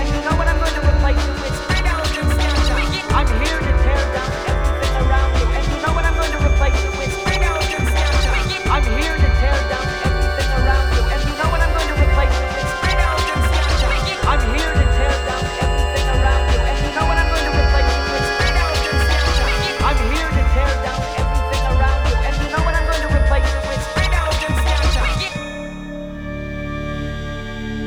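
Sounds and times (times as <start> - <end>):
drum and bass music: 0.0 - 27.7.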